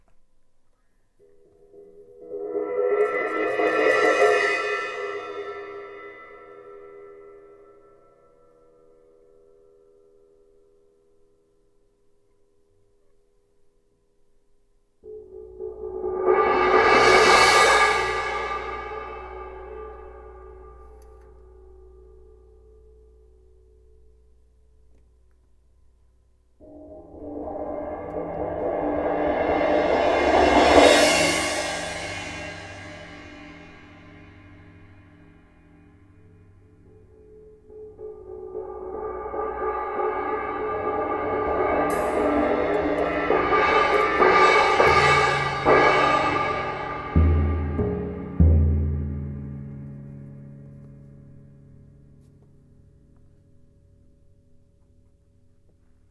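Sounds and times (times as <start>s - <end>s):
drum cymbals: 1.7s - 8.0s, 15.1s - 21.4s, 26.6s - 36.7s, 37.8s - 50.3s.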